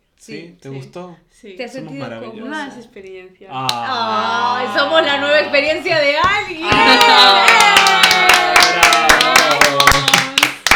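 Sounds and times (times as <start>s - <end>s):
speech: 0.2s - 7.6s
three people clapping hands: 6.2s - 10.7s.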